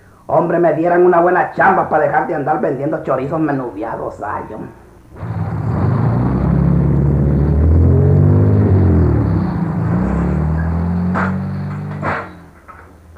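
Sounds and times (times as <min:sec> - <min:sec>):
speech: 0:00.3 - 0:05.3
car approaching with low engine rumble in a quiet alley: 0:05.1 - 0:13.1.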